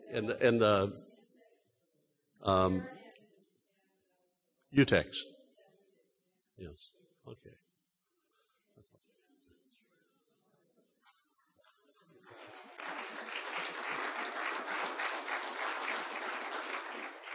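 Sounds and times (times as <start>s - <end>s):
speech: 0.1s - 1.1s, 2.4s - 3.0s, 4.7s - 5.3s, 6.6s - 7.6s
quiet room murmur: 12.1s - 17.3s
crowd applause: 12.3s - 17.3s.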